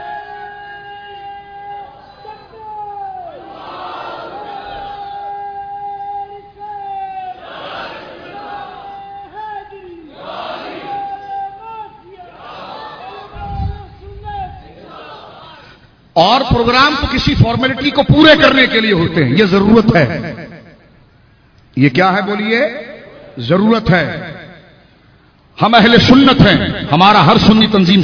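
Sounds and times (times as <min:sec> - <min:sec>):
crowd chanting a slogan in call-and-response: 0:03.3 - 0:05.2, 0:07.4 - 0:09.0, 0:10.1 - 0:11.1, 0:12.2 - 0:13.6, 0:14.6 - 0:15.8
speech: 0:16.2 - 0:20.3, 0:21.8 - 0:24.3, 0:25.6 - 0:28.0.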